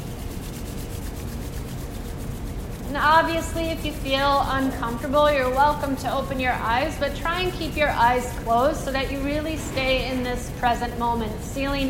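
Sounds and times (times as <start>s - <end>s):
palms rubbed together as fast as possible: 0.0s - 9.5s
speech: 2.9s - 11.8s.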